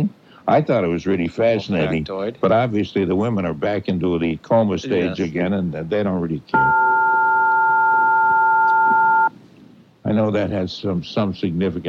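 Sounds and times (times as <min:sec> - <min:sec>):
speech: 0:00.0 - 0:06.9, 0:10.1 - 0:11.8
phone button electronic beep: 0:06.6 - 0:09.3.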